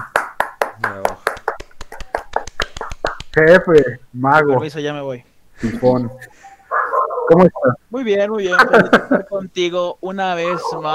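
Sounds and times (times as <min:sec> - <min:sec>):
few people clapping: 0:00.0 - 0:03.9
speech: 0:00.8 - 0:01.3, 0:03.4 - 0:06.4, 0:07.3 - 0:10.9
voice burst: 0:05.6 - 0:07.8
laughter: 0:08.5 - 0:09.4.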